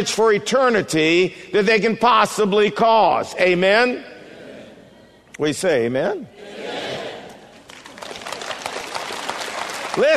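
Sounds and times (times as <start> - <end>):
speech: 0.0 - 4.1, 5.4 - 6.6, 10.0 - 10.1
audience clapping: 7.3 - 10.1.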